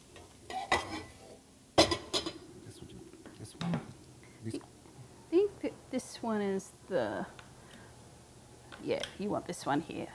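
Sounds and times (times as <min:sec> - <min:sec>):
pan being handled on a stove while cooking: 0:00.1 - 0:01.2, 0:01.8 - 0:02.4
speech: 0:06.2 - 0:07.4, 0:08.8 - 0:10.1.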